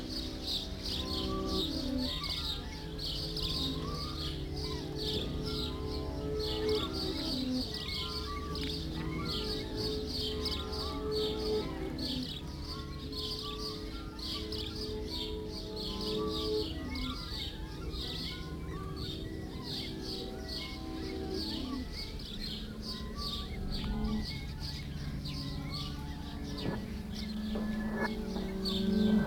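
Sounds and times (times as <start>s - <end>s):
birds singing: 0.0s - 29.2s
song: 22.7s - 29.2s.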